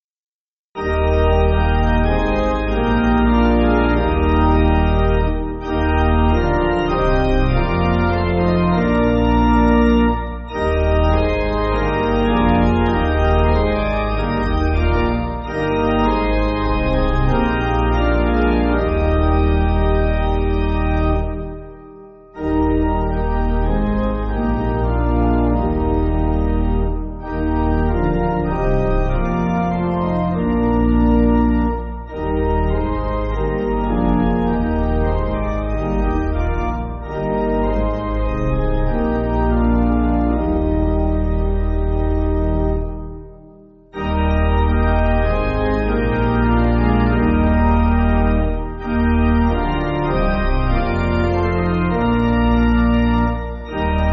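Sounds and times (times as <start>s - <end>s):
church pipe organ backing: 0.8s - 54.1s.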